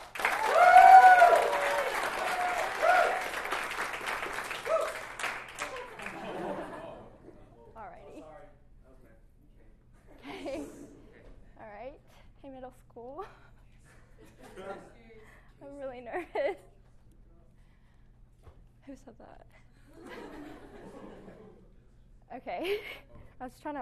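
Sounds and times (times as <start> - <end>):
applause: 0.0 - 6.7
laughter: 5.8 - 7.2, 10.2 - 10.9, 14.0 - 15.0, 19.9 - 21.8.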